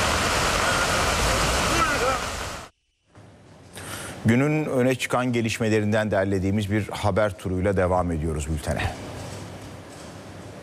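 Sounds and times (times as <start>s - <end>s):
floodwater rushing through streets and underpasses in Adana after heavy rain: 0.0s - 2.7s
speech: 4.2s - 9.1s.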